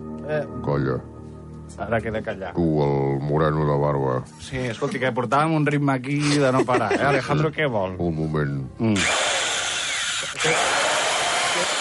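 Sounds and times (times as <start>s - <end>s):
speech: 0.3s - 9.2s, 10.4s - 10.8s
laughter: 6.2s - 7.5s
drilling holes into an iPad: 9.0s - 11.7s.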